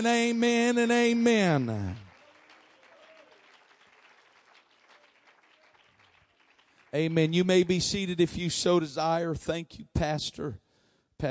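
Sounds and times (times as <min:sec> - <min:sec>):
speech: 0:00.0 - 0:02.0, 0:06.9 - 0:10.6
audience clapping hands: 0:00.9 - 0:08.1.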